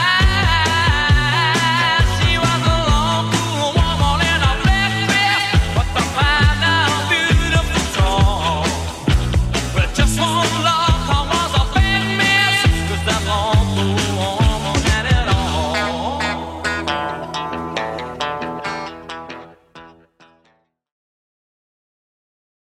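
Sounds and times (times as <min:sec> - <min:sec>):
70s-style dance music at 135 bpm: 0:00.0 - 0:17.5.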